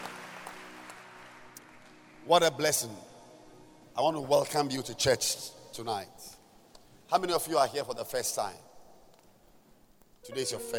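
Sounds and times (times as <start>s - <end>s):
audience clapping: 0.0s - 2.4s
speech: 2.3s - 3.1s, 4.0s - 6.3s, 7.1s - 8.7s, 10.2s - 10.7s.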